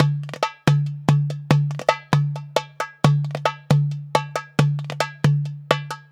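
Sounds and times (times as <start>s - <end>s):
derbuka drumming: 0.0s - 6.1s.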